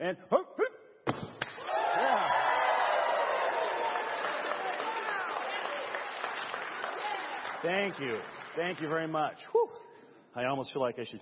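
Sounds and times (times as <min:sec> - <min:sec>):
speech: 0:00.0 - 0:00.4, 0:07.6 - 0:09.6, 0:10.4 - 0:11.1
audience applauding: 0:01.6 - 0:09.2.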